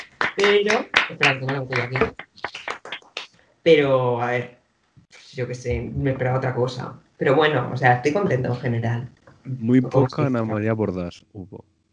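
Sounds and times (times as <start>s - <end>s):
clapping: 0.0s - 3.3s
speech: 0.4s - 2.7s, 3.6s - 11.7s.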